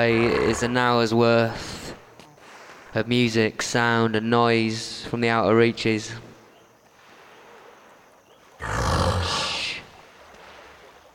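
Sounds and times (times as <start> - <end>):
African hippopotamus roaring: 0.0 - 1.2, 8.6 - 9.8
speech: 0.0 - 1.9, 2.9 - 6.3.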